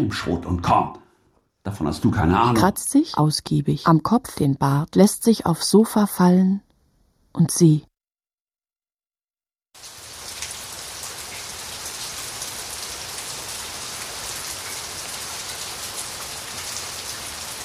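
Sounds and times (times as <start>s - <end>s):
speech: 0.0s - 1.0s, 1.6s - 6.6s, 7.4s - 7.9s
afternoon rain pattering on a surface: 9.8s - 17.6s.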